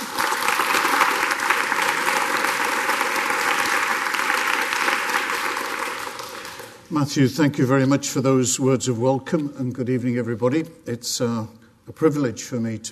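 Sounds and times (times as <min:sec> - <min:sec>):
audience applause welcoming a cardinal to the stage: 0:00.0 - 0:06.9
speech: 0:06.9 - 0:12.8.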